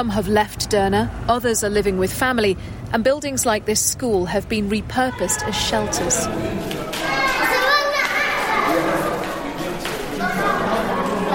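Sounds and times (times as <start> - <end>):
speech: 0.0 - 7.2
children playing in echoey school corridor: 4.9 - 11.3.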